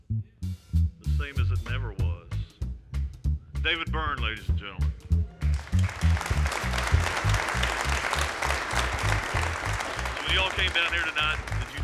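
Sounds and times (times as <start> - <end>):
low rhythmic thumping: 0.0 - 11.8
speech: 1.2 - 2.0, 3.6 - 5.0, 10.3 - 11.6
audience applause: 5.4 - 11.8.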